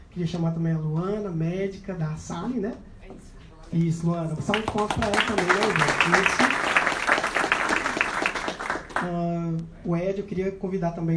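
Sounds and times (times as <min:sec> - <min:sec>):
speech: 0:00.2 - 0:06.6, 0:09.0 - 0:11.1
audience applause: 0:04.5 - 0:09.1.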